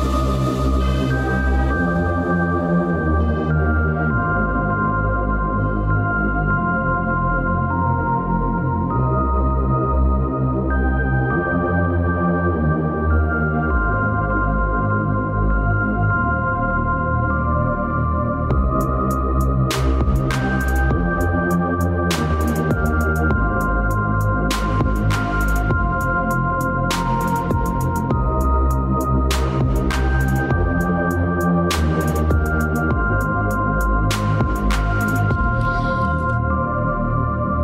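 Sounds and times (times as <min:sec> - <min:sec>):
music: 0:00.0 - 0:37.6.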